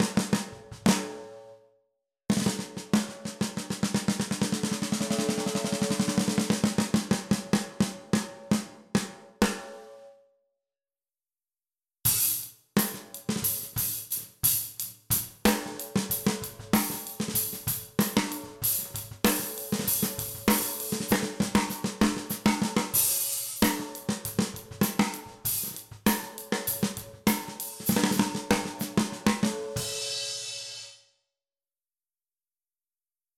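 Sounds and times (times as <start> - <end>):
Pearl mahogany 14x6.5 snare drum: 2.3 - 9.7, 12.1 - 30.0.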